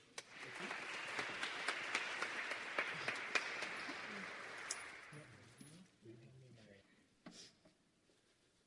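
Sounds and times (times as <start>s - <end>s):
audience clapping at a show: 0.0s - 5.6s.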